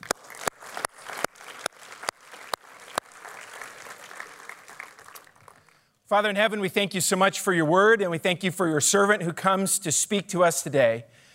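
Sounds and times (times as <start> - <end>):
church congregation clapping to welcome a visiting preacher on a Sunday morning: 0.0 - 6.0
speech: 6.1 - 11.2.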